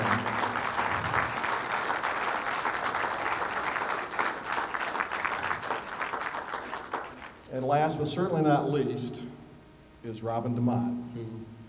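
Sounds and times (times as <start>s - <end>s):
round of applause: 0.0s - 7.5s
speech: 7.7s - 9.2s, 10.1s - 11.6s.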